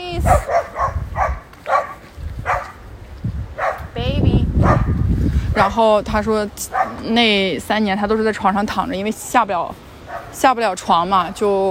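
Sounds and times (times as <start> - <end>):
speech: 0.2 - 0.6, 5.6 - 11.6
excited dog barking: 0.2 - 2.8, 3.6 - 3.9, 4.6 - 5.0, 6.7 - 7.1, 10.1 - 10.4.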